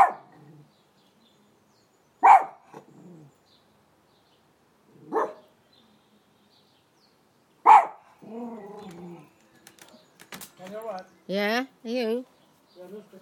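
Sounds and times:
dog barking: 0.0s - 0.3s, 2.2s - 2.8s, 5.1s - 5.5s, 7.6s - 8.1s
speech: 10.6s - 13.2s.

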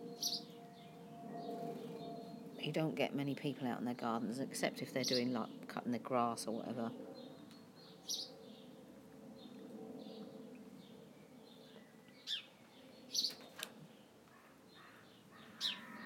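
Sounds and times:
low outdoor hum: 0.0s - 16.0s
speech: 2.6s - 7.2s
crows cawing: 14.3s - 16.0s.

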